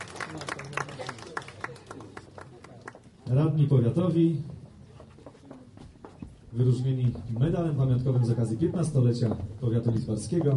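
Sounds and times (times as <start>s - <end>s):
audience clapping at a ceremony honouring district councillors: 0.0s - 3.1s
speech: 0.3s - 0.8s, 3.3s - 4.5s, 6.6s - 10.5s.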